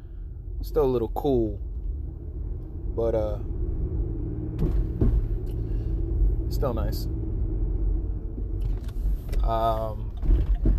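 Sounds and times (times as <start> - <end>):
car driving on the road: 0.0 - 10.7
speech: 0.6 - 1.7, 3.0 - 3.6, 4.6 - 4.9, 6.5 - 7.2, 9.5 - 10.5.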